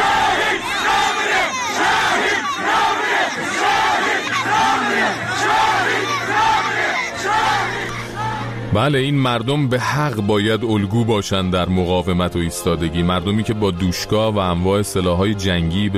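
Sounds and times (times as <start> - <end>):
funeral crowd chanting slogans: 0.0 - 8.7
speech: 8.8 - 15.9.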